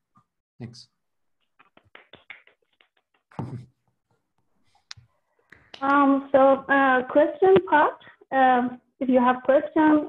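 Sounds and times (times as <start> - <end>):
speech: 0.6 - 1.0, 3.5 - 3.7, 5.8 - 10.0
scattered hand claps of online audience: 1.4 - 3.4.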